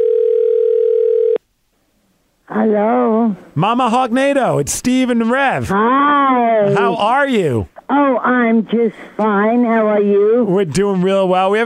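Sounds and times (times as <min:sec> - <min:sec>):
telephone call ringing tone: 0:00.0 - 0:01.4
speech: 0:02.6 - 0:11.6.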